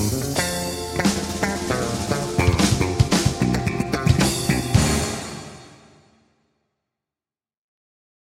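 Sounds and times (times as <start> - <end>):
bass solo: 0.0 - 5.3.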